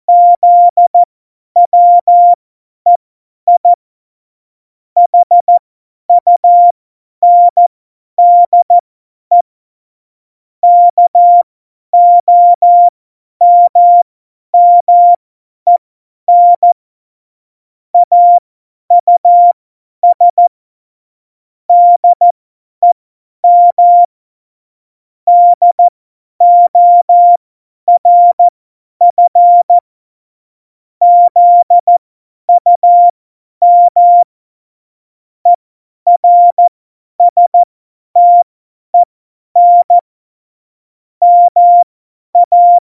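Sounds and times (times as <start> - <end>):
CW Morse code beeps: 0.1 - 3.8, 5.0 - 5.6, 6.2 - 7.6, 8.2 - 9.4, 10.6 - 11.4, 12.0 - 14.0, 14.6 - 16.8, 18.0 - 20.5, 21.7 - 24.1, 25.3 - 29.8, 31.0 - 34.3, 35.5 - 40.0, 41.2 - 42.8.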